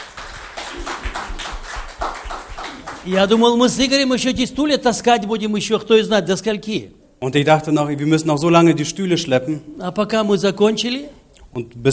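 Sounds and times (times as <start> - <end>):
audience applause: 0.0 - 3.6
speech: 3.0 - 11.9.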